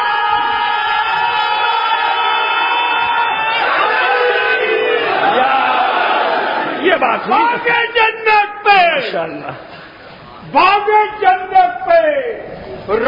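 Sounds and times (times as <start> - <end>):
crowd shouting a slogan in unison: 0.0 - 9.2
speech: 7.1 - 8.1, 9.1 - 9.8, 10.4 - 13.0.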